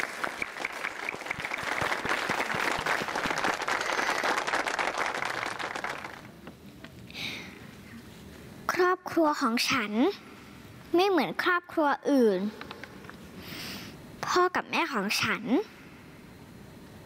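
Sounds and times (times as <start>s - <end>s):
audience applause: 0.0s - 6.4s
speech: 9.2s - 10.3s, 11.0s - 12.6s, 14.3s - 15.8s.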